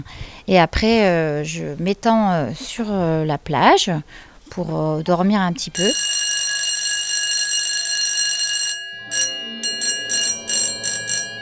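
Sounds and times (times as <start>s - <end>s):
speech: 0.0s - 6.1s
unpleasant school bell ringing: 5.8s - 11.4s.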